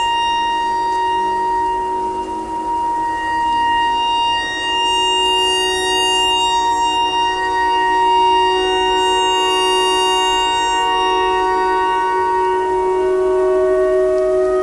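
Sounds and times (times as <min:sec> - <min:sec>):
clarinet notes in E pentatonic imitating a tornado siren: 0:00.0 - 0:14.6.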